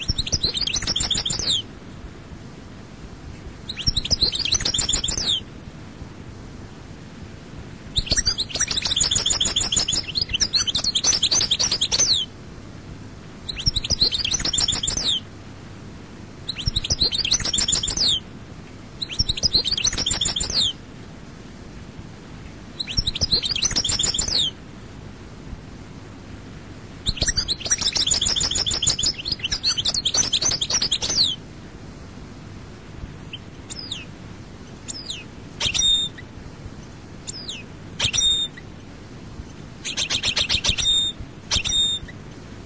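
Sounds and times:
European goldfinch song: 0:00.0 - 0:01.7, 0:03.7 - 0:05.4, 0:08.0 - 0:12.3, 0:13.5 - 0:15.2, 0:16.5 - 0:18.2, 0:19.0 - 0:20.8, 0:22.8 - 0:24.5, 0:27.1 - 0:31.4, 0:33.7 - 0:34.1, 0:34.9 - 0:36.2, 0:37.3 - 0:38.6, 0:39.8 - 0:42.2.

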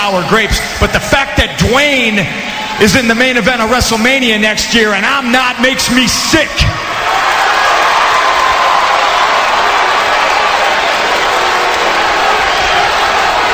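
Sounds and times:
speech: 0:00.0 - 0:07.4
huge wrestling-show crowd cheering: 0:06.5 - 0:13.5.

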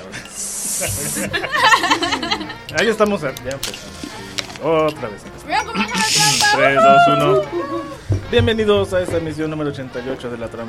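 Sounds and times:
voice imitating sizzling steaks with a steady hiss: 0:00.0 - 0:01.5, 0:05.9 - 0:06.7
person laughing: 0:00.8 - 0:02.6
speech: 0:00.8 - 0:10.6.

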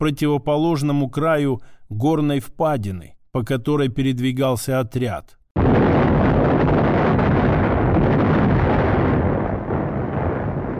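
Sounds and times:
speech: 0:00.0 - 0:05.7
double explosion echoing in mountains: 0:05.6 - 0:10.7.

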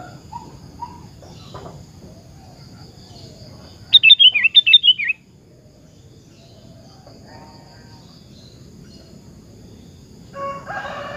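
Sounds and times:
birds soft chattering: 0:00.9 - 0:05.2
sooty-headed bulbul descending chirps: 0:03.9 - 0:05.2.

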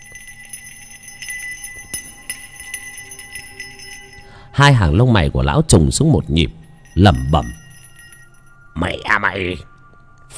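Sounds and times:
small hand bell being shaken: 0:00.0 - 0:04.7, 0:06.0 - 0:08.7
speech: 0:04.6 - 0:07.6, 0:09.4 - 0:09.7.

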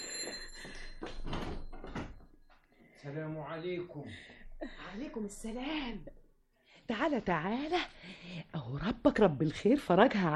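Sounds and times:
house door creaking open for an arriving visitor: 0:01.2 - 0:02.3
speech: 0:03.1 - 0:06.2, 0:06.9 - 0:10.3.

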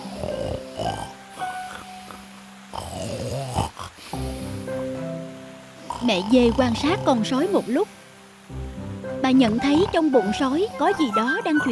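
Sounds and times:
loud snoring: 0:00.0 - 0:04.8, 0:05.8 - 0:07.9, 0:09.4 - 0:10.9
speech: 0:06.1 - 0:08.0, 0:09.3 - 0:11.6.

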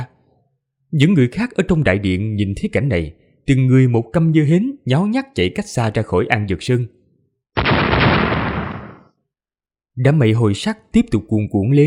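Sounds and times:
speech: 0:00.9 - 0:07.0, 0:10.0 - 0:11.8
lightning bolt strike sound effect in a fantasy audio drama: 0:07.6 - 0:09.1.

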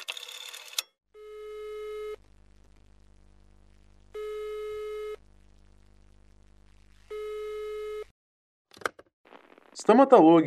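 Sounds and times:
telephone ringback tone: 0:00.2 - 0:02.2, 0:04.1 - 0:05.2, 0:07.1 - 0:08.1
faint low hum: 0:01.2 - 0:08.1
speech: 0:09.8 - 0:10.4.

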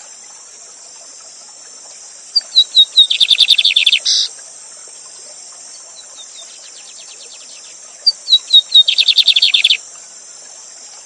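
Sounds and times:
lined seedeater song with buzzy trill: 0:02.3 - 0:04.3, 0:05.7 - 0:09.8.

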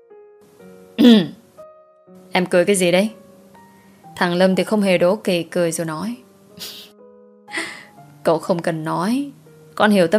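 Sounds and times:
dry coughing: 0:01.0 - 0:01.4
speech: 0:01.0 - 0:01.4, 0:02.3 - 0:03.2, 0:04.2 - 0:06.8, 0:08.2 - 0:10.1.

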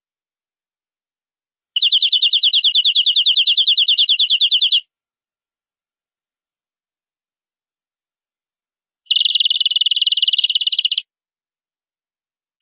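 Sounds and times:
canary trilling: 0:01.8 - 0:04.8, 0:09.1 - 0:11.1.

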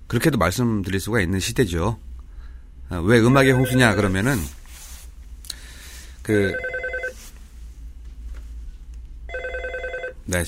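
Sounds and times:
speech: 0:00.1 - 0:02.1, 0:02.9 - 0:04.6, 0:06.3 - 0:06.7, 0:10.3 - 0:10.4
low hum: 0:02.2 - 0:05.4
telephone bell ringing: 0:03.3 - 0:04.1, 0:06.4 - 0:07.2, 0:09.3 - 0:10.2.

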